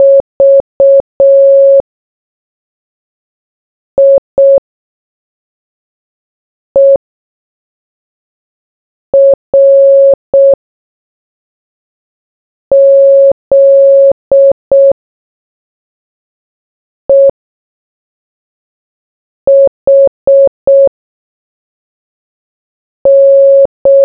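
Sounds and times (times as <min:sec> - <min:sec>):
morse code beeps: 0:00.0 - 0:01.8, 0:04.0 - 0:04.6, 0:06.8 - 0:07.0, 0:09.2 - 0:10.6, 0:12.7 - 0:15.0, 0:17.1 - 0:17.3, 0:19.5 - 0:20.9, 0:23.1 - 0:24.0.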